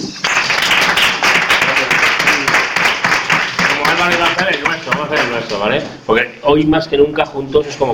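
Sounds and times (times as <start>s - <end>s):
audience applause: 0.0s - 5.6s
speech: 4.0s - 7.9s.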